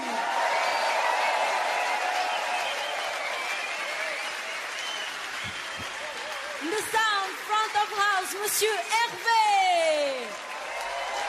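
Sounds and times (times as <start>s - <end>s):
crowd whoops: 0.0s - 6.8s, 9.6s - 11.2s
concert audience at the Africa Festival applauding: 0.0s - 11.2s
speech: 6.6s - 10.5s.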